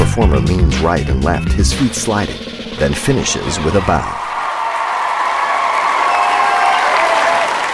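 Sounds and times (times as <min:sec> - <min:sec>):
speech: 0:00.2 - 0:04.2
people clapping: 0:04.3 - 0:07.7.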